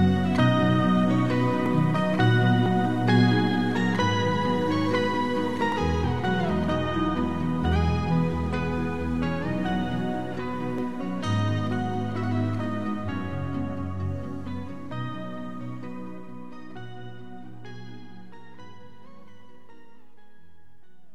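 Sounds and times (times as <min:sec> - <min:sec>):
rain: 0:00.0 - 0:15.2.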